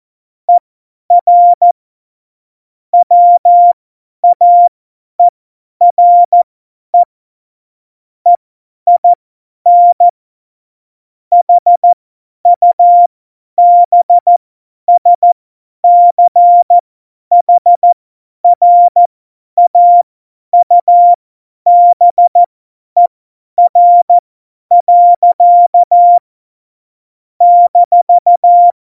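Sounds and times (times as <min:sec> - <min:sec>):
Morse code CW keying for a Morse course: 0:01.2 - 0:01.8, 0:03.0 - 0:05.3, 0:05.9 - 0:06.4, 0:08.3 - 0:10.1, 0:11.3 - 0:12.0, 0:12.6 - 0:18.0, 0:18.6 - 0:20.0, 0:20.6 - 0:26.2, 0:27.4 - 0:28.8.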